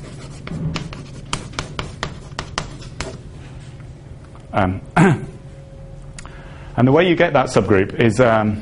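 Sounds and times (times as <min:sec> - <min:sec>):
chalk or pen writing on a board during a mathematics lecture: 0:00.0 - 0:03.2
speech: 0:04.6 - 0:05.3, 0:06.8 - 0:08.5.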